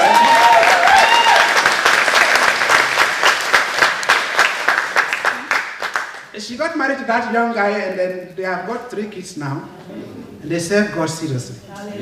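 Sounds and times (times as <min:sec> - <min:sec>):
audience clapping: 0:00.0 - 0:06.4
speech: 0:06.5 - 0:12.0.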